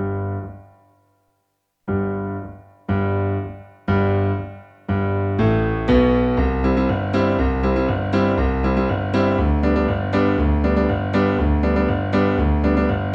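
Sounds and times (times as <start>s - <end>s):
bass piano: 0.0s - 0.8s, 1.9s - 13.1s.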